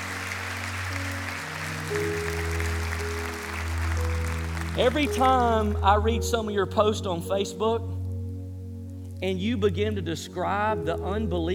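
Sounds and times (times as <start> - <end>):
church congregation clapping in welcome: 0.0 - 6.1
sustained low musical tones: 0.0 - 11.5
speech: 4.8 - 8.0, 9.2 - 11.5.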